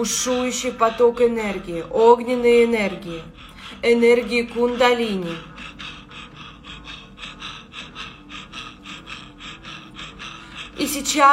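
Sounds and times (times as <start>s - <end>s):
speech: 0.0s - 5.9s, 10.8s - 11.3s
rapid forceful breathing through the mouth: 0.0s - 11.3s.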